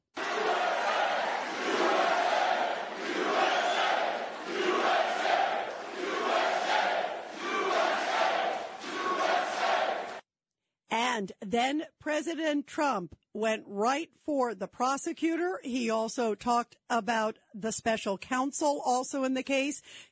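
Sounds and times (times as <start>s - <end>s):
crowd of hundreds chanting in unison: 0.0s - 10.2s
speech: 11.2s - 20.1s.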